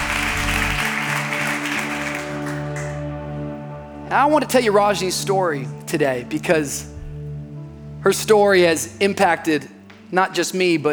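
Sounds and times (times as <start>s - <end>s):
applause: 0.0s - 3.2s
speech: 4.1s - 6.9s, 8.0s - 10.9s.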